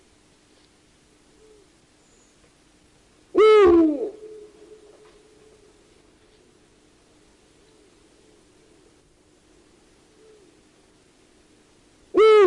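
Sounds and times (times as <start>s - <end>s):
Eurasian eagle-owl harsh call sliding down in pitch: 3.3s - 5.8s, 12.1s - 12.4s.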